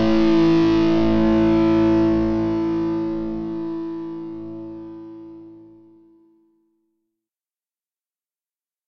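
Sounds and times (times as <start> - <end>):
guitar accompaniment in Am F G: 0.0 - 6.1.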